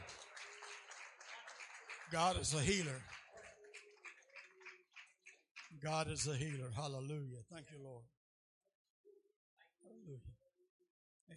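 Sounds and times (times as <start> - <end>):
audience clapping hands: 0.0 - 6.8
speech: 2.1 - 3.2, 5.8 - 8.2, 10.0 - 10.4.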